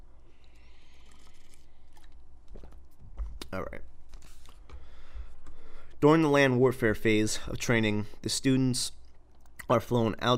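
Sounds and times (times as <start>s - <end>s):
low hum: 0.0s - 10.3s
swallow: 0.4s - 2.2s
sip of coffee: 0.5s - 2.2s
speech: 3.5s - 3.9s, 6.0s - 9.0s, 9.7s - 10.3s.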